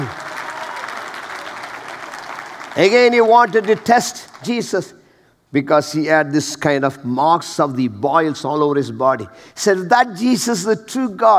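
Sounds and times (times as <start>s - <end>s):
audience hand clapping: 0.0s - 4.7s
speech: 2.8s - 11.3s.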